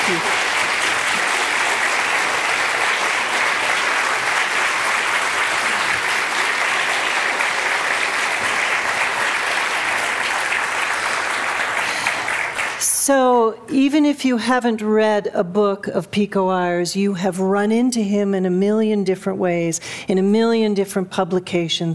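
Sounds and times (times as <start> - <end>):
audience applauding Pico Iyer and Laurie Brown at a Stillness Residency event: 0.0 - 12.9
speech: 0.1 - 0.4, 13.1 - 21.9.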